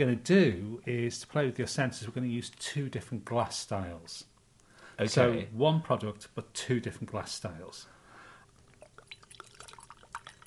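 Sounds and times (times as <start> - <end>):
speech: 0.0 - 4.3, 5.0 - 8.0
drink pouring into a glass: 8.7 - 10.4.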